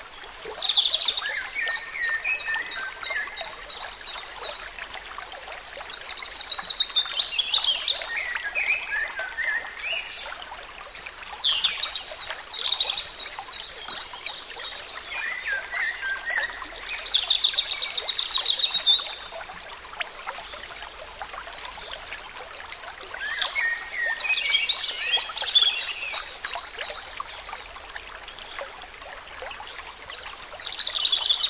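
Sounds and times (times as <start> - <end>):
nature sounds: 0.0 - 31.4.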